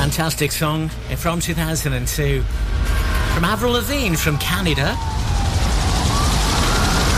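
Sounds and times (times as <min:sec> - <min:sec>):
speech: 0:00.1 - 0:05.2
helicopter flying away: 0:04.5 - 0:07.1.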